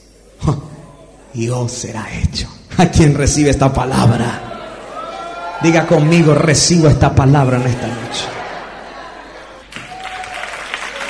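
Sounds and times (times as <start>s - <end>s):
speech: 0.5s - 0.7s, 1.3s - 4.5s, 5.6s - 8.4s
laughter: 3.9s - 10.0s
audience applause: 4.9s - 11.0s.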